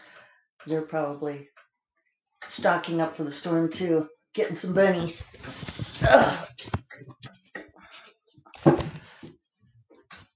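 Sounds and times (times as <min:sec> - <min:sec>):
speech: 0:00.6 - 0:01.6, 0:02.5 - 0:06.2
person grunting while stretching to reach a laptop: 0:05.9 - 0:06.5.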